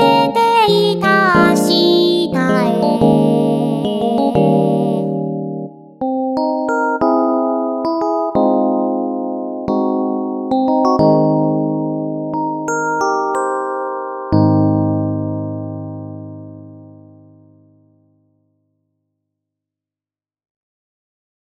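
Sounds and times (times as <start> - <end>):
software synthesizer: 0.0 - 17.8.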